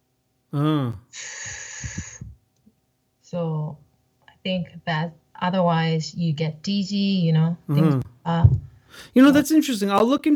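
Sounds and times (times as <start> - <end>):
speech: 0.5 - 2.0, 4.4 - 10.3
voice imitating a fast forced out-breath: 0.6 - 2.2.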